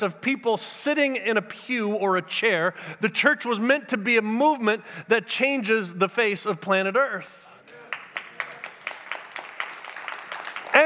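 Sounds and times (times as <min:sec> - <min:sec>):
speech: 0:00.0 - 0:07.5
church congregation clapping rhythmically: 0:07.6 - 0:10.8.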